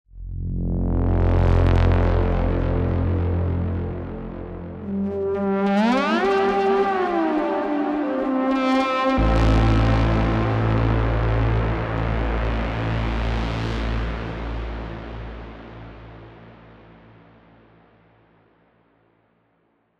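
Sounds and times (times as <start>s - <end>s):
techno synth pads with tunnel effect: 0.8s - 8.4s, 9.0s - 14.8s.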